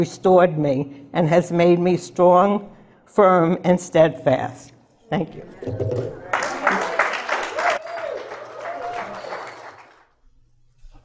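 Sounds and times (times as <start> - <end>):
speech: 0.0 - 6.3
audience applause: 5.7 - 10.1.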